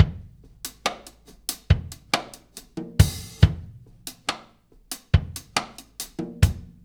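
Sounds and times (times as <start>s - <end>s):
laid back drum loop: 0.0s - 6.8s.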